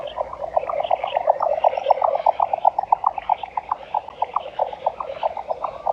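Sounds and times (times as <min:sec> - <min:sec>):
jack snipe call: 0:00.0 - 0:05.9.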